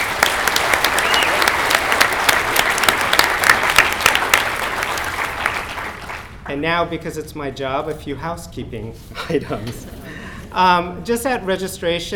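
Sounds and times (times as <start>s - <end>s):
audience applause: 0.0s - 6.4s
speech: 6.6s - 10.0s, 10.6s - 12.1s.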